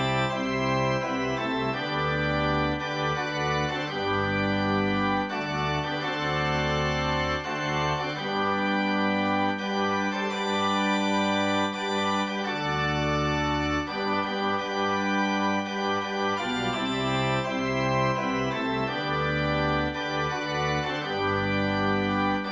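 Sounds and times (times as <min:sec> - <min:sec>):
organ music: 0:00.0 - 0:22.4.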